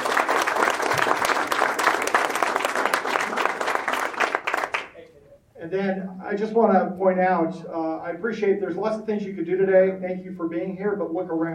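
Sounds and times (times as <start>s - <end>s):
audience applause: 0.0s - 5.0s
speech: 5.7s - 11.5s.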